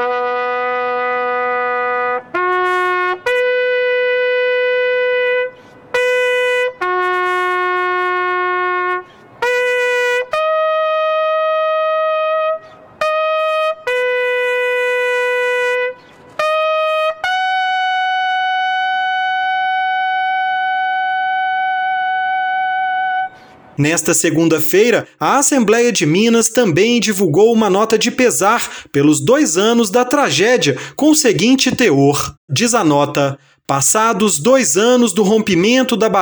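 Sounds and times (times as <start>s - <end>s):
lone bugle playing military call: 0.0s - 24.2s
speech: 23.8s - 36.1s.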